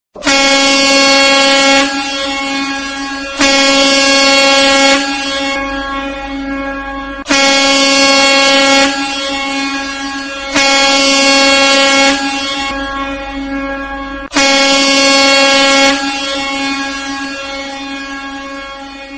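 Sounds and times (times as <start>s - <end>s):
ship horn: 0.1s - 19.1s.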